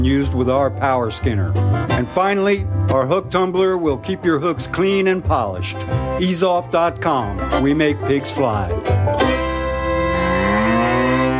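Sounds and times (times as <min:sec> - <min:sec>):
speech: 0:00.0 - 0:09.4
cow mooing: 0:09.7 - 0:11.3.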